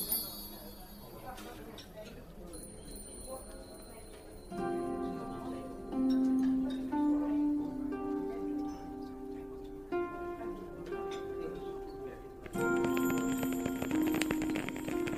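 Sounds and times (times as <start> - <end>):
chiming bell-like tones: 0.0 - 1.8, 2.4 - 5.8, 12.5 - 15.1
ticking clicks and tinkles: 0.0 - 6.9, 12.4 - 15.1
murmur of chatter in a fantasy fairy cafe: 0.0 - 15.1.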